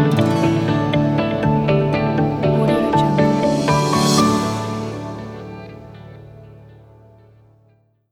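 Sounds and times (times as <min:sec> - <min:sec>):
corporate logo jingle: 0:00.2 - 0:06.3.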